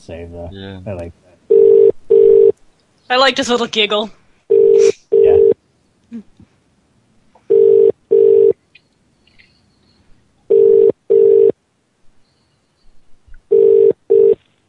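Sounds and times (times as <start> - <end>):
speech: 0.0 - 1.3, 3.1 - 4.2
telephone ringback tone as a call is placed: 1.5 - 2.5, 4.5 - 5.6, 7.5 - 8.5, 10.5 - 11.5, 13.5 - 14.4.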